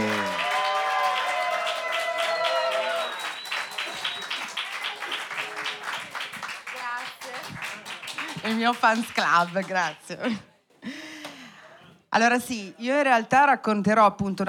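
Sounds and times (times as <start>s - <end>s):
audience applause: 0.0s - 10.2s
speech: 8.5s - 10.5s, 12.2s - 14.4s.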